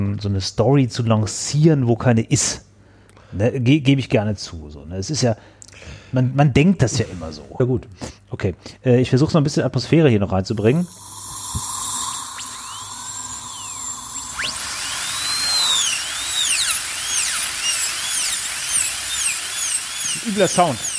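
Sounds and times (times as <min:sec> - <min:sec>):
speech: 0:00.2 - 0:02.7, 0:03.3 - 0:11.7, 0:20.4 - 0:20.9
dental drill whirring: 0:10.7 - 0:20.9.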